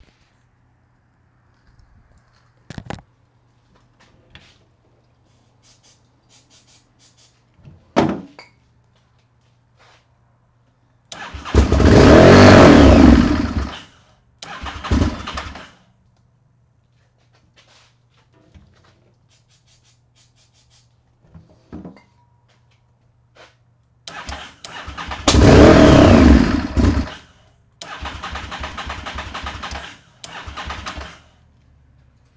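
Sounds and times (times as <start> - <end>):
engine failing to start: 11.1 - 15.8, 24.1 - 31.4.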